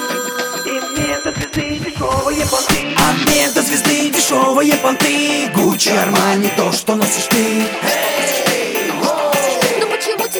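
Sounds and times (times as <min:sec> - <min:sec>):
telephone ringing with an electronic tone: 0:00.0 - 0:10.3
thumping musical beats: 0:01.0 - 0:07.8
speech: 0:01.6 - 0:08.6.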